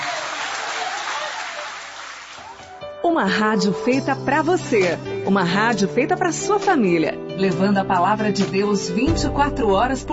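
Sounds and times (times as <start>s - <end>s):
church congregation applauding during a worship service: 0.0s - 2.8s
speech: 3.0s - 10.1s.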